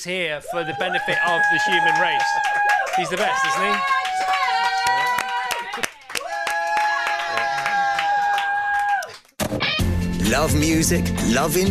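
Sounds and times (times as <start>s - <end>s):
speech: 0.0s - 5.1s, 10.3s - 11.6s
control room applause: 0.8s - 9.4s.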